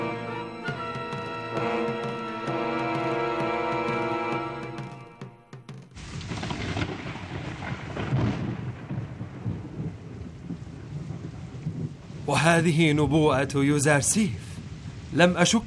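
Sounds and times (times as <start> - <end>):
steady heavy rain pouring down: 0.0 - 4.9, 6.0 - 15.6
tonal music: 0.0 - 6.0
speech: 1.6 - 2.1, 12.3 - 14.5, 15.1 - 15.6
deep rolling rumble of thunder: 6.0 - 15.6.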